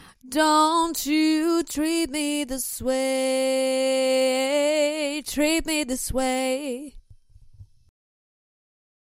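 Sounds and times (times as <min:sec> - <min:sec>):
a cappella pop singing: 0:00.0 - 0:07.0.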